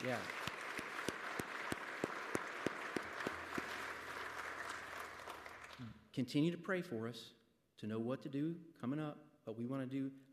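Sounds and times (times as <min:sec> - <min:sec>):
speech: 0:00.0 - 0:00.4, 0:05.8 - 0:10.3
round of applause: 0:00.0 - 0:06.0.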